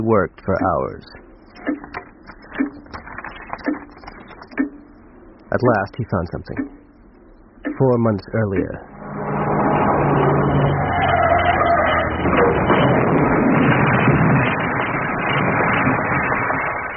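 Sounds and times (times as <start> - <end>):
speech: 0.0 - 1.9, 5.5 - 6.8, 7.7 - 8.9
car engine revving before a crash: 8.7 - 16.9.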